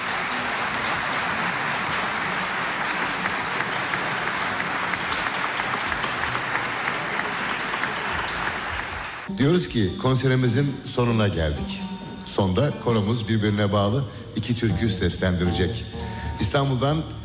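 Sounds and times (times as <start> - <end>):
concert audience applause: 0.0 - 9.3
speech: 9.4 - 17.2.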